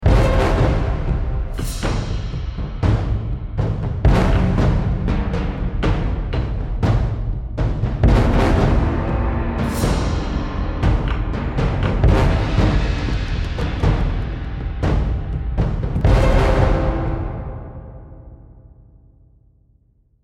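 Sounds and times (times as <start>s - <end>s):
medium battle music: 0.0s - 18.8s.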